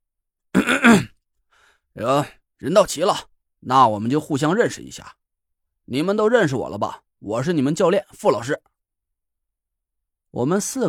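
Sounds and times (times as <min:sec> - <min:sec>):
throat clearing: 0:00.5 - 0:01.2
speech: 0:00.6 - 0:01.1, 0:02.0 - 0:05.2, 0:05.9 - 0:08.7, 0:10.3 - 0:10.8.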